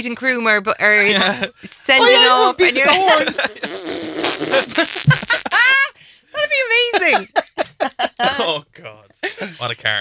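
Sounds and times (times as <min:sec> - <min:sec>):
speech: 0:00.0 - 0:05.6, 0:06.4 - 0:09.9
laughter: 0:01.0 - 0:05.9, 0:06.7 - 0:08.6
fart sound effect: 0:03.6 - 0:05.6.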